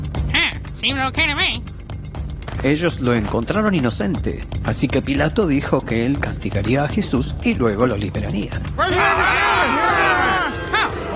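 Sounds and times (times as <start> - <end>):
speech: 0.8 - 1.7, 2.6 - 9.8
angry crowd shouting: 8.8 - 11.1.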